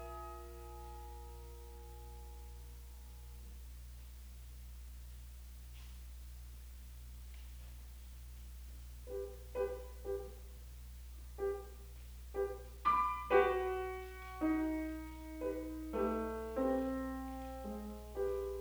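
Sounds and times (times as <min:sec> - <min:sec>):
six small piano pieces: 0:00.0 - 0:03.4, 0:09.0 - 0:10.6, 0:11.3 - 0:18.5.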